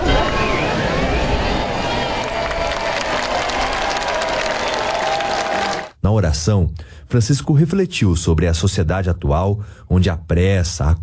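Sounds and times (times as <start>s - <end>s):
large crowd applauding: 0.0s - 5.9s
speech: 6.2s - 11.0s.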